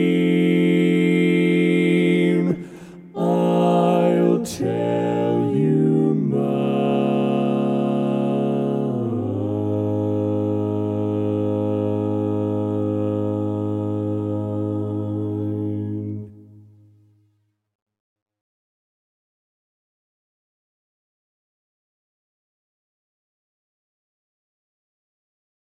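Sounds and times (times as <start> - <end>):
bass vocal part learning track: 0.0 - 16.6.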